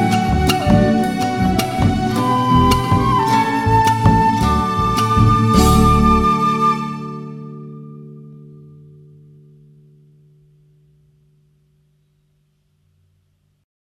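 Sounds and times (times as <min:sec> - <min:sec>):
instrumental backing track without melody: 0:00.0 - 0:09.4.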